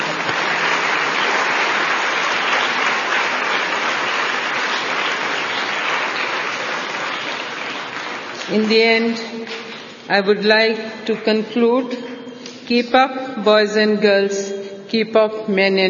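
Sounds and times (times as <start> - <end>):
audience applause: 0.0 - 8.7
speech: 8.5 - 12.1, 12.7 - 15.8.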